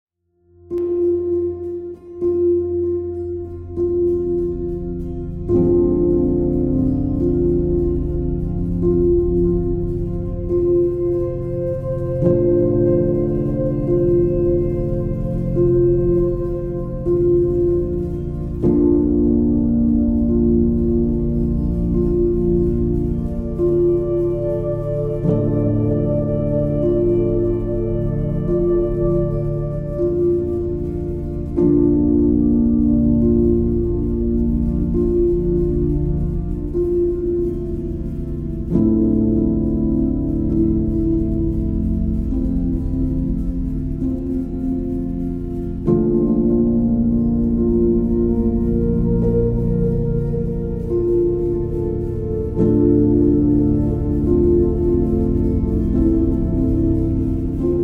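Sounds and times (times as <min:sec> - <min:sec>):
relaxing meditation binaural beats: 0:00.5 - 0:57.8.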